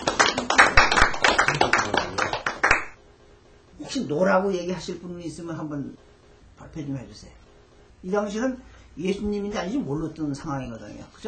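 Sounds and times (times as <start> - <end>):
audience clapping: 0.0 - 3.0
speech: 3.9 - 7.4, 8.0 - 11.2.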